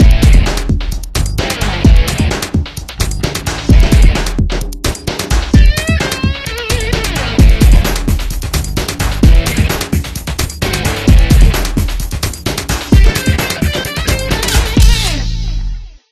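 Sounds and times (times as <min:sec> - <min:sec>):
cheerleaders dance music: 0:00.0 - 0:15.6.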